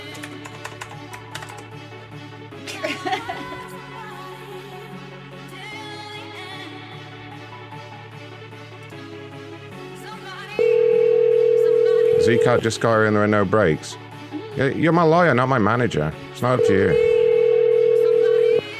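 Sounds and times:
laughter: 2.6s - 3.8s
telephone tone calling a cell phone: 10.6s - 12.8s, 16.5s - 18.7s
speech: 12.3s - 14.0s, 14.6s - 17.1s.

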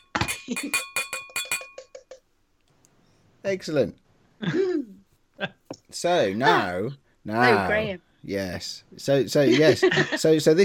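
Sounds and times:
glasses clinking in a toast: 0.0s - 2.2s
speech: 0.5s - 1.0s, 3.4s - 10.6s.

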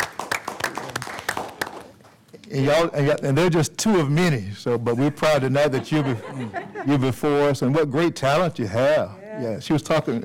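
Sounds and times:
applause in meeting room: 0.0s - 2.2s
speech: 2.5s - 10.2s
laughter: 5.0s - 7.2s.

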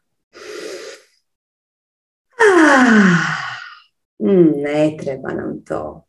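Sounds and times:
nasal inhale during a guided breathing exercise: 0.3s - 1.2s
speech: 2.7s - 3.3s, 4.2s - 6.0s.

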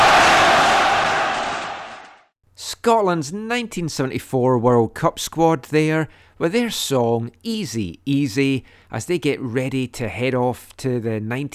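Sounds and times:
stadium crowd cheering: 0.0s - 2.3s
speech: 2.8s - 11.5s.

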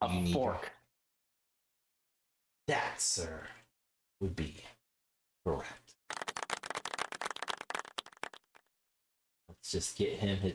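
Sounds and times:
speech: 0.0s - 0.8s, 2.7s - 3.6s, 4.2s - 4.8s, 5.4s - 5.9s, 9.6s - 10.5s
audience clapping: 6.1s - 8.6s.

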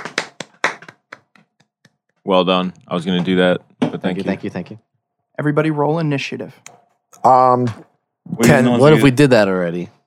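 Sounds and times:
group clapping hands: 0.0s - 2.0s
speech: 2.3s - 10.0s.

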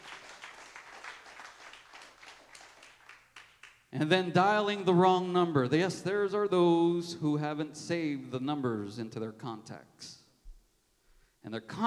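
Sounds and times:
audience hand clapping: 0.0s - 3.9s
speech: 3.9s - 10.2s, 11.5s - 11.8s.

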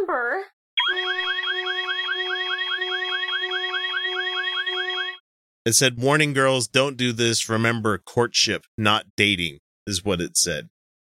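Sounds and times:
speech: 0.1s - 1.1s, 5.6s - 10.7s
loud alarm klaxon: 0.8s - 5.2s.

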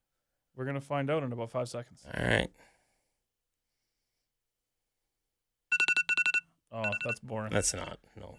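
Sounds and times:
speech: 0.6s - 2.7s, 7.0s - 8.3s
phone alarm ringtone: 5.7s - 7.2s.

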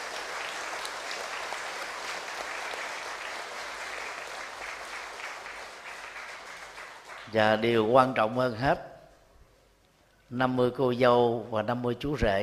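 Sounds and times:
big crowd applause: 0.0s - 7.4s
speech: 7.3s - 8.9s, 10.3s - 12.4s.

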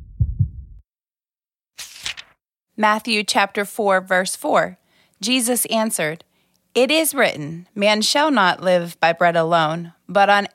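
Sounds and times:
fast heartbeat: 0.0s - 0.8s
speech: 2.8s - 10.5s.

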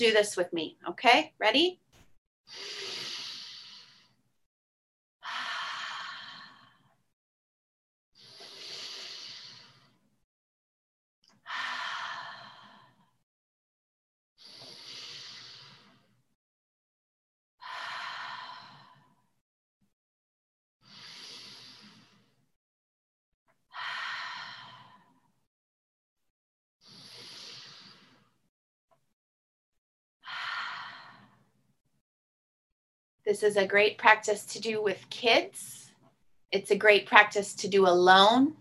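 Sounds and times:
speech: 0.0s - 1.8s, 2.5s - 3.0s, 33.3s - 35.8s, 36.5s - 38.5s
slow deep breaths in and out during a guided breathing exercise: 2.5s - 4.4s, 5.2s - 7.0s, 8.2s - 10.2s, 11.3s - 13.2s, 14.4s - 16.3s, 17.6s - 19.4s, 20.8s - 22.6s, 23.7s - 25.4s, 26.8s - 28.5s, 30.2s - 31.5s.

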